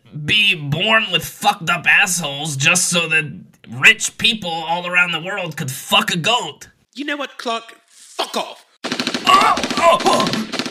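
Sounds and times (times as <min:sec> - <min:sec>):
speech: 0:00.2 - 0:08.6, 0:09.4 - 0:10.6
rapid burst of M16 rifle gunfire: 0:08.8 - 0:10.6.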